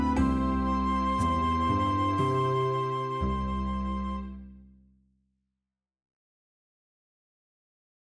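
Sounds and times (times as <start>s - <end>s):
instrumental music: 0.0s - 4.8s.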